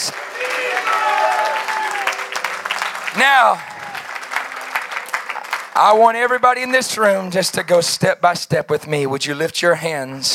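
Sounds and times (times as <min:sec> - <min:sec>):
church congregation clapping during a service: 0:00.0 - 0:07.7
speech: 0:03.2 - 0:03.7, 0:05.8 - 0:10.3.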